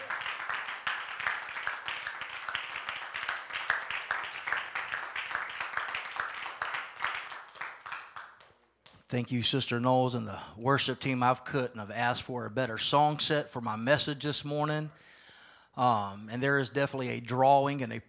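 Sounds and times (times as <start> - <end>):
audience clapping: 0.0 - 8.6
speech: 9.1 - 15.1, 15.8 - 18.0.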